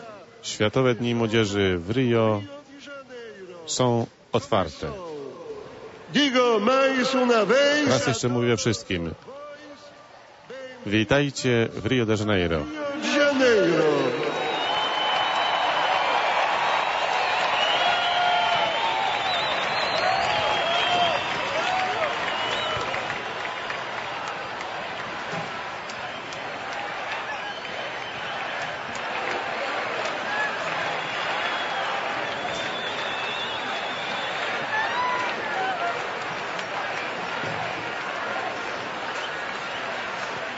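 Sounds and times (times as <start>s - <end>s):
speech: 0.4s - 2.6s, 3.7s - 5.1s, 6.1s - 9.4s, 10.8s - 14.2s
large crowd of young people cheering and applauding at World Youth Day in Rio de Janeiro: 13.0s - 40.5s.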